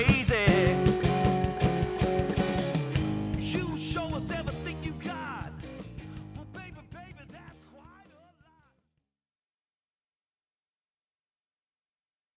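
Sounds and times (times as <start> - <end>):
rock music: 0.0 - 8.3.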